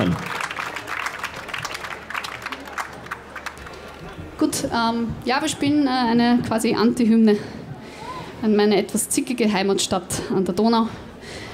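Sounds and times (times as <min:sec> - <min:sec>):
crowd applauding: 0:00.0 - 0:04.4
faint murmur of voices: 0:00.0 - 0:11.5
speech: 0:04.4 - 0:07.6, 0:08.4 - 0:11.0.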